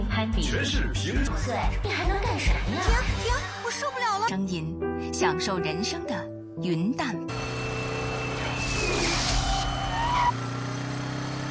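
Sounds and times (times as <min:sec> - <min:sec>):
speech: 0:00.3 - 0:07.6
car tires skidding across the road: 0:07.3 - 0:11.4.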